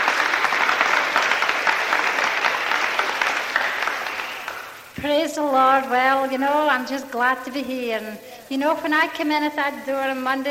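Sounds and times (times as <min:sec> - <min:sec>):
audience clapping: 0:00.0 - 0:05.0
speech: 0:05.0 - 0:10.4.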